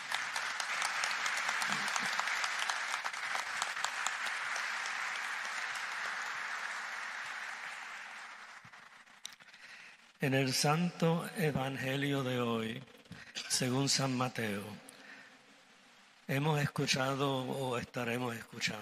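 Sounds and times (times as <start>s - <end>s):
audience applause: 0.0s - 9.9s
speech: 10.2s - 13.0s, 13.6s - 14.8s, 16.3s - 18.8s.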